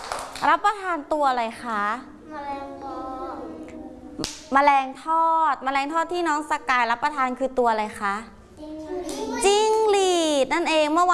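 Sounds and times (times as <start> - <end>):
hands clapping: 0.0 - 0.5
speech: 0.4 - 3.1, 4.2 - 11.1.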